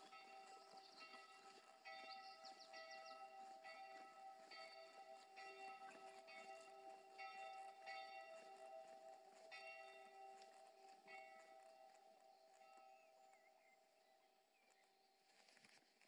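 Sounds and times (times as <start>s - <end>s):
walking ambience on the Eichelberg: 0.0s - 16.0s.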